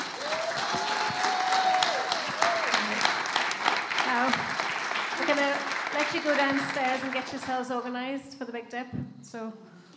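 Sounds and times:
audience clapping: 0:00.0 - 0:08.0
speech: 0:05.3 - 0:09.7.

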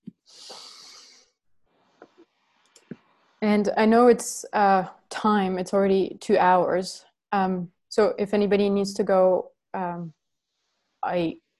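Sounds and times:
several people taking a deep breath together during a group session: 0:00.3 - 0:01.2
speech: 0:03.4 - 0:10.2, 0:11.0 - 0:11.4.

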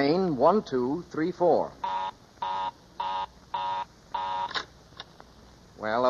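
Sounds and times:
speech: 0:00.0 - 0:01.9, 0:05.8 - 0:06.0
telephone line busy signal: 0:01.8 - 0:04.6.

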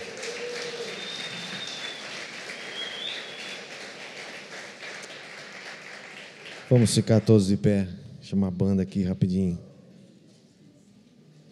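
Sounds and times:
audience applause: 0:00.0 - 0:07.3
brief high whistles: 0:00.2 - 0:03.7
speech: 0:06.7 - 0:09.7.

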